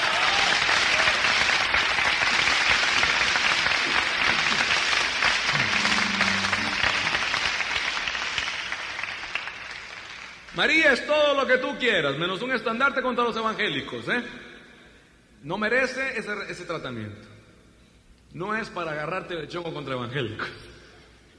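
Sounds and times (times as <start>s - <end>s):
audience applause: 0.0s - 10.5s
speech: 10.6s - 14.5s, 15.4s - 17.3s, 18.3s - 20.8s.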